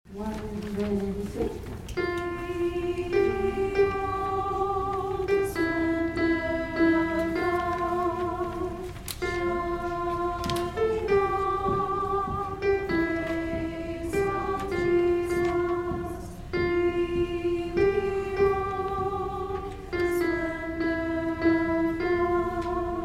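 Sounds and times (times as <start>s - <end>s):
alto singing: 0.1s - 23.0s.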